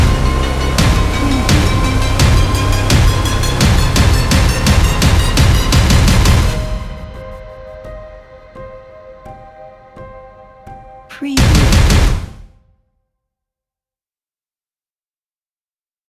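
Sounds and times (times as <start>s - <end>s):
dark trailer impact: 0.0s - 8.2s, 11.4s - 12.6s.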